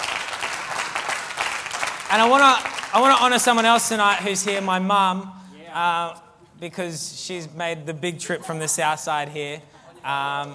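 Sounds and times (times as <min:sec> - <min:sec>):
audience applause: 0:00.0 - 0:04.7
speech: 0:02.1 - 0:10.5.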